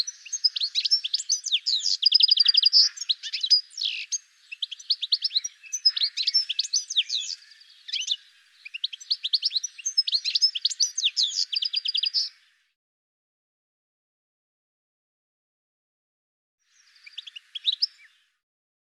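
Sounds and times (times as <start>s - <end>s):
bird chirps and trills: 0.0s - 12.5s, 16.7s - 18.4s.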